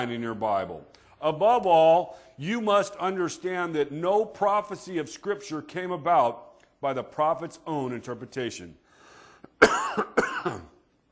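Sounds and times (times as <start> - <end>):
speech: 0.0 - 8.8
person reading Scripture aloud coughing: 9.5 - 10.9
throat clearing: 9.5 - 10.9.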